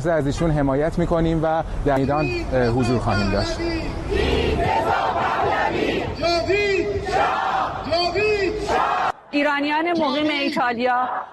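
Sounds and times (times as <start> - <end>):
speech: 0.0 - 5.2, 5.8 - 11.3
Iranian diaspora protesters in Italy shouting victims' names in unison: 4.0 - 6.2, 7.0 - 7.9, 8.6 - 9.2.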